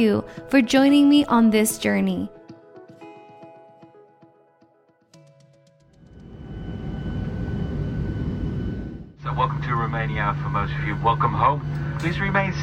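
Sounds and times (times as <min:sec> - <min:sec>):
speech: 0:00.0 - 0:02.4, 0:09.9 - 0:12.6
airplane engines and rushing air roaring during landing: 0:06.0 - 0:12.6
faint ringing tones in an airplane cabin: 0:06.0 - 0:12.6.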